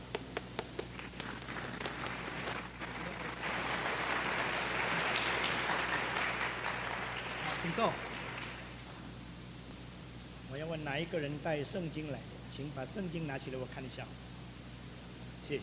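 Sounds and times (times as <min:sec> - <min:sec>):
audience applause: 0:00.6 - 0:08.8
speech: 0:07.7 - 0:08.1, 0:10.6 - 0:14.3, 0:15.5 - 0:15.6.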